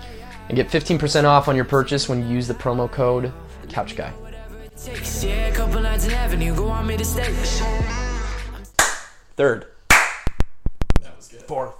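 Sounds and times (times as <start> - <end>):
speech: 0.5 - 4.2, 4.8 - 8.1, 9.4 - 9.7, 11.5 - 11.7
hand claps: 8.7 - 9.2, 9.9 - 10.4.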